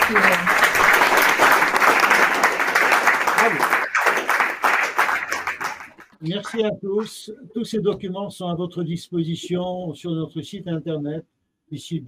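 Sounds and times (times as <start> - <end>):
audience applause: 0.0 - 6.6
speech: 0.1 - 0.6, 6.2 - 12.0.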